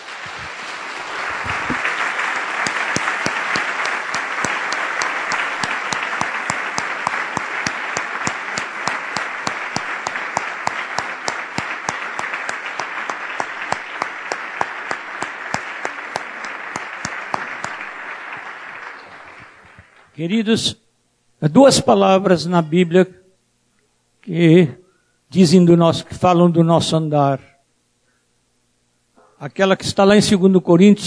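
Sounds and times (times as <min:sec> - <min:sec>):
audience applause: 0:00.0 - 0:20.1
speech: 0:20.2 - 0:20.8, 0:21.4 - 0:23.2, 0:24.3 - 0:27.5, 0:29.4 - 0:31.0.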